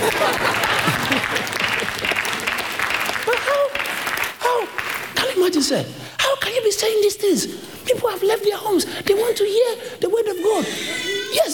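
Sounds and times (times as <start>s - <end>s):
laughter: 0.0s - 2.5s, 10.3s - 11.5s
audience clapping: 0.0s - 5.8s
speech: 5.5s - 11.5s.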